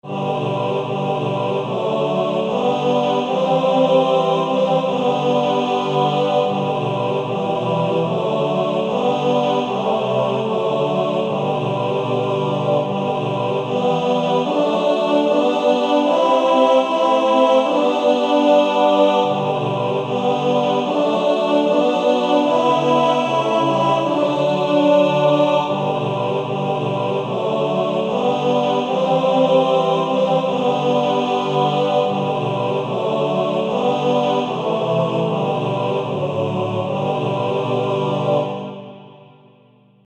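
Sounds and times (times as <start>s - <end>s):
practice music: 0.2s - 39.1s.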